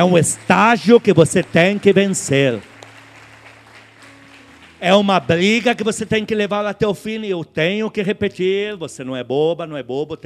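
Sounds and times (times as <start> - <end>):
speech: 0.0 - 2.7, 4.8 - 10.2
audience applause: 0.0 - 5.8.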